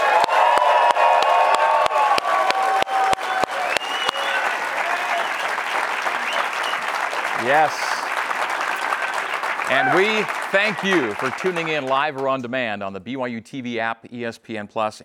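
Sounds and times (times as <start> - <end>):
studio audience whoops and shouts: 0.0 - 7.8, 9.7 - 10.3
full-house studio audience clapping in Studio C at a live college football TV show: 0.0 - 12.8
speech: 7.5 - 7.9, 9.7 - 15.0.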